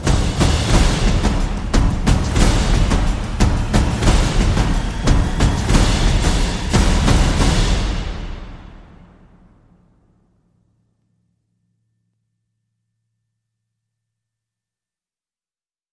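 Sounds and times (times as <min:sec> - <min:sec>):
sound effects: 0:00.0 - 0:09.3
percussion: 0:00.0 - 0:10.5.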